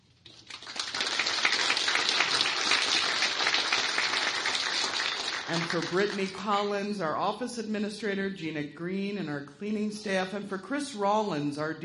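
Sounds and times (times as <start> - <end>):
audience applause: 0.3 - 6.2
speech: 5.5 - 11.8.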